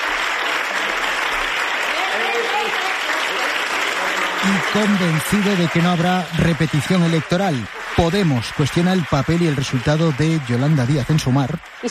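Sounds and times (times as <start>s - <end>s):
crowd applause for Sánchez in Ferraz: 0.0s - 11.9s
speech: 4.4s - 11.9s.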